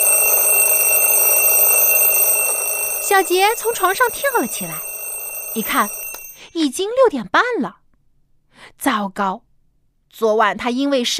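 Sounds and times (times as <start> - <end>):
alarm clock ringing: 0.0 - 6.5
speech: 3.1 - 4.9, 5.5 - 7.8, 8.8 - 9.4, 10.1 - 11.1.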